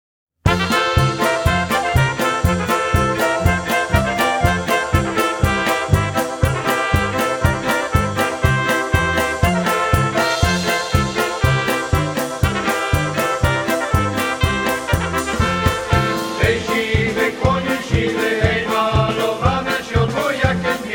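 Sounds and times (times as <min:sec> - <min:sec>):
polka: 0:00.4 - 0:20.9.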